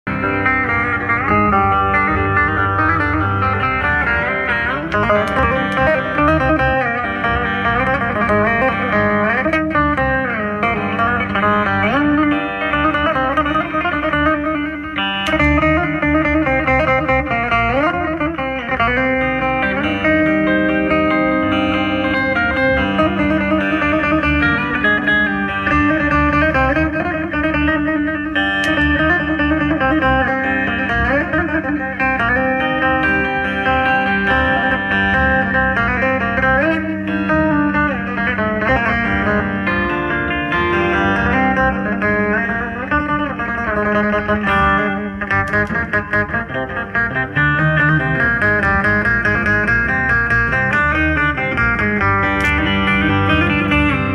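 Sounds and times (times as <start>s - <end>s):
instrumental music: 0.0s - 54.1s.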